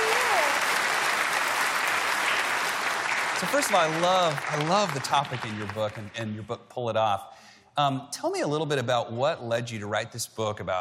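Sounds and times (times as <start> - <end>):
audience applause welcoming a guest author at a ministry event: 0.0 - 6.2
speech: 3.4 - 10.8.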